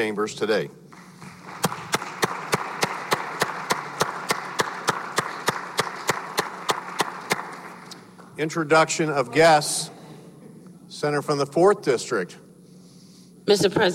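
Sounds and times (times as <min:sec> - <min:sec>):
speech: 0:00.0 - 0:00.8, 0:08.4 - 0:10.0, 0:11.0 - 0:12.4, 0:13.5 - 0:13.9
hissing noise: 0:00.0 - 0:13.9
applause in a Senate chamber welcoming guests: 0:00.9 - 0:08.6.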